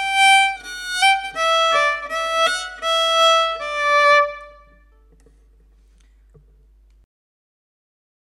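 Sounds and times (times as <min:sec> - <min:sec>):
solo fiddle playing a polka: 0:00.0 - 0:04.9.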